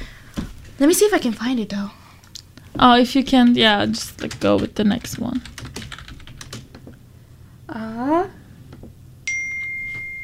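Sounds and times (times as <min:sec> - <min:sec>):
speech: 0:00.8 - 0:02.0, 0:02.8 - 0:05.6
mobile phone notification chime: 0:09.3 - 0:10.2.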